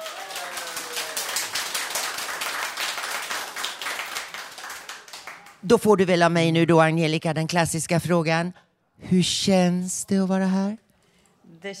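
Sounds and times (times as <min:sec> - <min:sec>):
audience applause: 0:00.0 - 0:05.6
speech: 0:05.6 - 0:10.8, 0:11.6 - 0:11.7.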